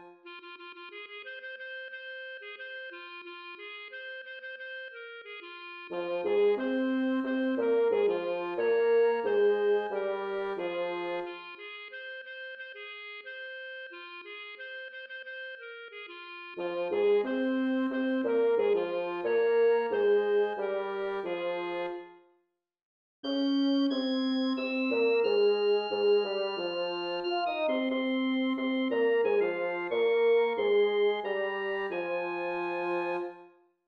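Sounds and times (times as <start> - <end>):
bass: 5.9 - 11.3, 12.0 - 21.9, 23.3 - 33.2.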